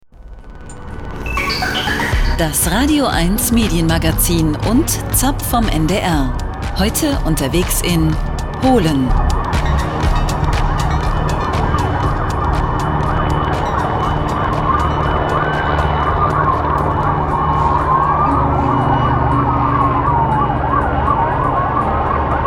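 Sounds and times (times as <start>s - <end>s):
helicopter rotor drone: 0.2s - 22.4s
police sirens wailing: 1.2s - 4.0s, 7.9s - 22.4s
speech: 2.4s - 9.9s.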